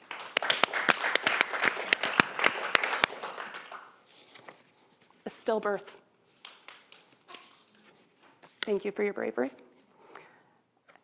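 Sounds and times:
audience applause: 0.0s - 4.0s
speech: 5.5s - 6.0s, 8.7s - 9.7s.

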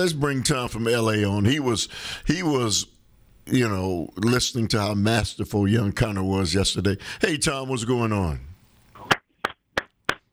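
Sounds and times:
speech: 0.0s - 2.9s, 3.5s - 8.5s
one person clapping: 9.0s - 10.3s.

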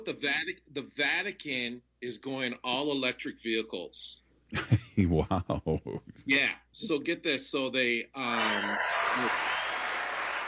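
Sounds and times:
speech: 0.0s - 9.4s
cheering and applause sound effect: 8.3s - 10.4s.

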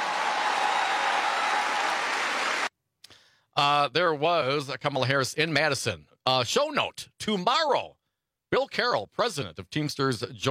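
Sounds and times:
crowd cheering and applauding: 0.0s - 2.7s
speech: 3.6s - 10.4s.

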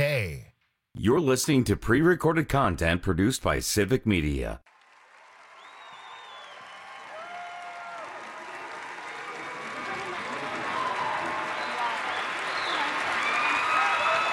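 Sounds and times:
speech: 1.0s - 4.7s
crowd applause: 4.7s - 14.3s
whistles and cheers: 5.0s - 14.3s.

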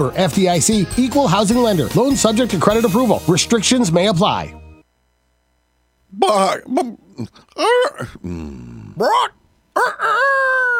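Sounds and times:
speech: 0.0s - 4.6s, 6.2s - 10.7s
rooster crowing: 9.0s - 10.7s.

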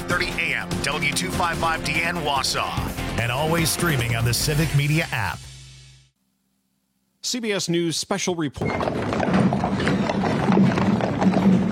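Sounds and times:
speech: 0.5s - 5.5s, 7.2s - 9.9s
horse hooves clip-clopping on pavement: 8.6s - 11.6s
horse-drawn caisson wheels rumbling: 9.1s - 11.6s.

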